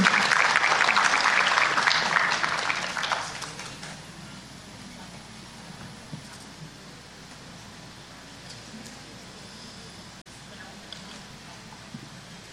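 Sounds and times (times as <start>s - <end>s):
audience applause: 0.0s - 4.0s.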